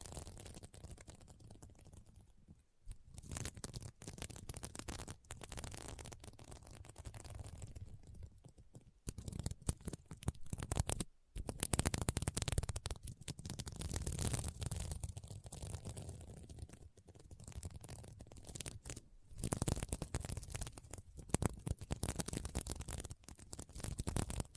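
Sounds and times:
scratching on a sequin mermaid pillow: 2.9s - 8.2s, 9.2s - 24.5s.

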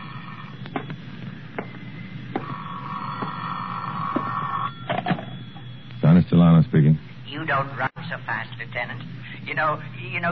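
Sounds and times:
telephone ringing: 0.0s - 6.1s
speech: 6.3s - 10.3s.

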